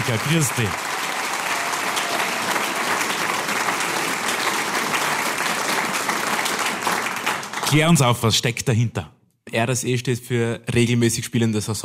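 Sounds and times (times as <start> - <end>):
speech: 0.0 - 1.0, 7.7 - 11.8
audience applause: 0.0 - 8.0.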